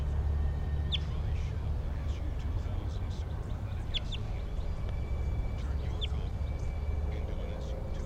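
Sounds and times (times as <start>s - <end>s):
steady low rumbling noise: 0.0s - 8.0s
wild bird chirping: 0.0s - 8.0s.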